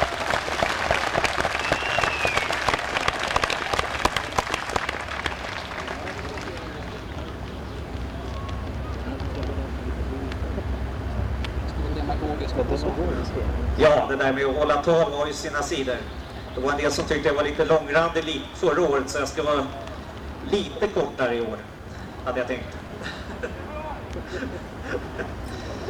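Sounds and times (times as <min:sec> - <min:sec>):
audience applause: 0:00.0 - 0:10.6
low murmur: 0:00.0 - 0:25.8
speech: 0:14.3 - 0:19.8, 0:20.5 - 0:22.8
laughter: 0:21.9 - 0:25.8.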